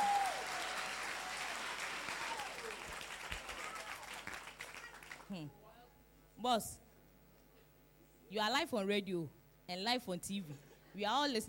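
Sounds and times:
audience applause: 0.0s - 5.3s
speech: 5.3s - 5.6s, 6.4s - 6.8s, 8.3s - 11.4s.

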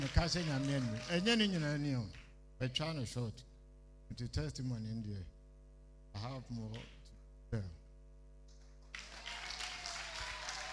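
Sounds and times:
audience applause: 0.0s - 1.4s, 8.9s - 10.7s
speech: 0.0s - 3.5s, 4.1s - 5.3s, 6.1s - 7.8s.

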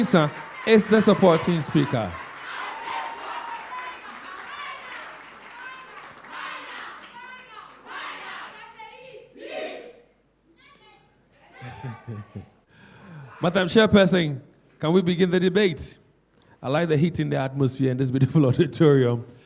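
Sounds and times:
speech: 0.0s - 2.2s, 13.4s - 16.0s, 16.6s - 19.4s
audience clapping in an auditorium at a debate: 0.0s - 8.5s
audience shouts and chatter: 0.0s - 10.0s
laughter: 11.4s - 12.6s.

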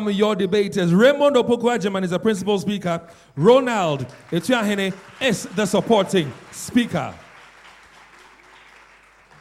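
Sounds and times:
speech: 0.0s - 7.2s
audience applause at a school debate event: 3.9s - 9.3s.

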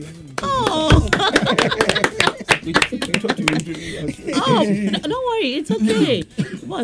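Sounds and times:
audience clapping: 0.3s - 4.1s
laughter: 0.4s - 6.8s
speech: 3.5s - 6.8s.

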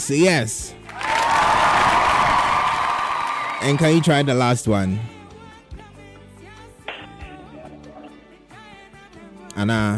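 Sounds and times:
speech: 0.0s - 1.1s, 3.6s - 5.2s, 9.6s - 9.9s
group clapping during a children's name-reading exercise: 0.8s - 4.1s.

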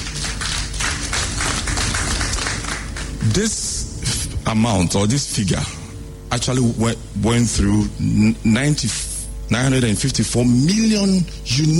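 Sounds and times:
audience applause: 0.0s - 3.2s
speech: 3.3s - 3.8s, 4.5s - 11.7s.

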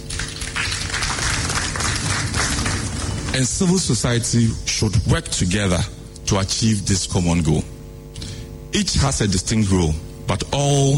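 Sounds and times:
applause: 0.0s - 3.4s
speech: 3.4s - 7.7s, 8.7s - 10.9s.

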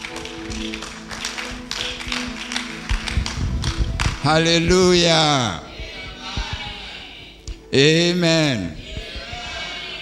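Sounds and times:
audience clapping: 0.0s - 5.0s
speech: 0.6s - 1.0s, 4.2s - 5.7s, 7.7s - 8.8s.

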